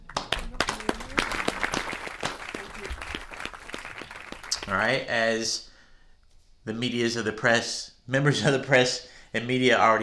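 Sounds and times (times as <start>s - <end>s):
audience applause: 0.0s - 4.9s
speech: 4.7s - 5.7s, 6.6s - 10.0s.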